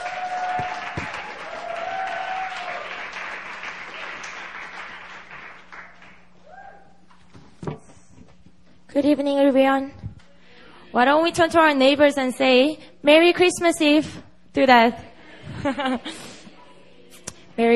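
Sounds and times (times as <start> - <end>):
audience applause welcoming a pastor at a Christmas Eve church service: 0.0 - 6.2
speech: 9.0 - 10.0, 10.9 - 15.0, 15.6 - 16.2, 17.6 - 17.7.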